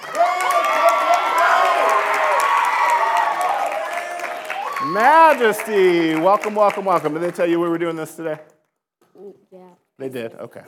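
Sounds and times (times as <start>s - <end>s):
crowd cheering with scattered whoops and shouts: 0.0s - 6.9s
audience applauding: 0.0s - 8.4s
speech: 4.9s - 8.5s, 9.2s - 10.6s.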